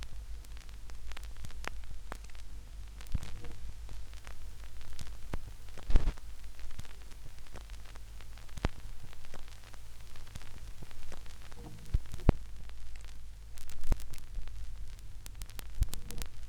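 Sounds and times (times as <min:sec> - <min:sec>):
reversed vinyl record crackle mix: 0:00.0 - 0:16.4.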